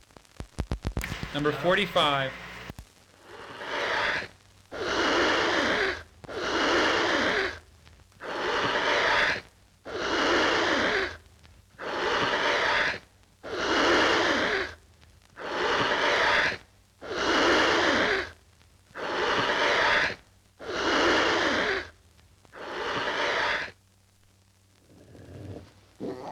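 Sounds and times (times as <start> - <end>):
speech: 1.3 - 2.4
tiger hissing: 3.2 - 7.6, 8.2 - 11.2, 11.8 - 14.8, 15.4 - 18.3, 19.0 - 21.9, 22.6 - 23.8, 24.8 - 26.3.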